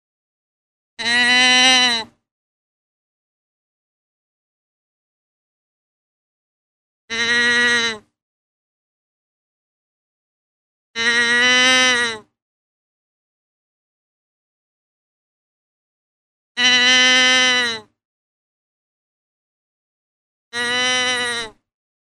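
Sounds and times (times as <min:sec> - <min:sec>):
deer bleating: 0:01.0 - 0:02.1, 0:07.1 - 0:08.1, 0:11.0 - 0:12.3, 0:16.6 - 0:17.9, 0:20.6 - 0:21.6.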